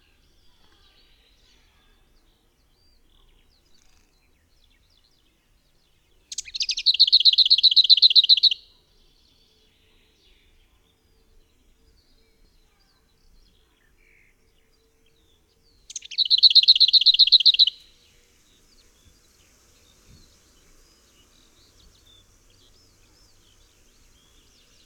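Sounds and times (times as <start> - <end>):
birds: 0.0 - 24.8
lesser whitethroat: 15.9 - 24.8.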